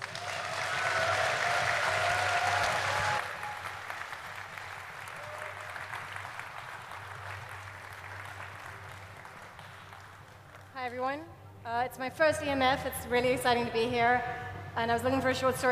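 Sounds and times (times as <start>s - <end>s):
audience applause welcoming an award-winning sci-fi author: 0.0s - 10.7s
speech: 10.9s - 15.7s.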